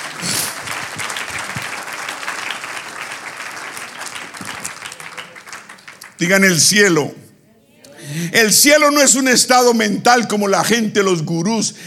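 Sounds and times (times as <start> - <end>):
audience applause: 0.0 - 6.7
speech: 6.2 - 7.2, 8.2 - 11.8.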